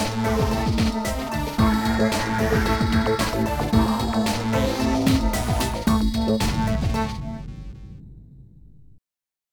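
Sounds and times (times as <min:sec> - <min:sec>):
robot: 0:00.0 - 0:07.4.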